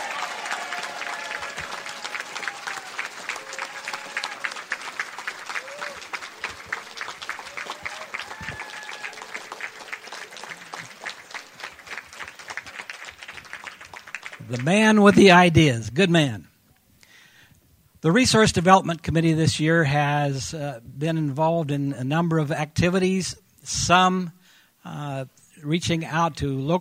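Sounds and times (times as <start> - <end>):
audience applause: 0.0 - 15.5
speech: 14.5 - 16.5, 18.0 - 26.7.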